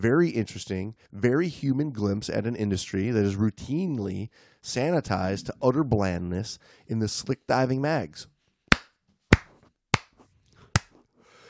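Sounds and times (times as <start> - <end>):
speech: 0.0 - 8.3
slow hand claps: 8.7 - 10.2.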